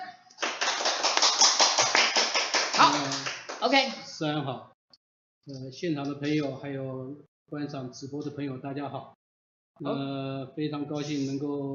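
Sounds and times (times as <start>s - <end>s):
audience applause: 0.4s - 3.6s
speech: 2.8s - 4.8s, 5.4s - 9.2s, 9.8s - 11.7s.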